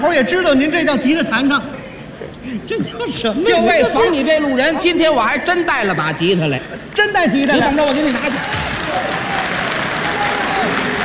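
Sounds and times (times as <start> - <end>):
speech: 0.0 - 1.8, 2.4 - 9.2
audience applause at a Beijing crosstalk comedy show: 7.7 - 11.0.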